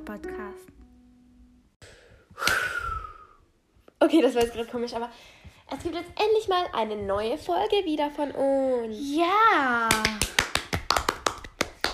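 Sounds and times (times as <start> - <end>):
speech: 0.0 - 0.8, 4.0 - 10.3
hosts clapping hands: 9.8 - 11.9.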